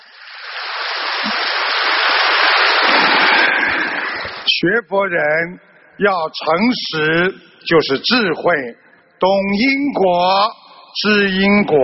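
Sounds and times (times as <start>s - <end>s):
applause: 0.4s - 4.5s
speech: 4.6s - 11.8s.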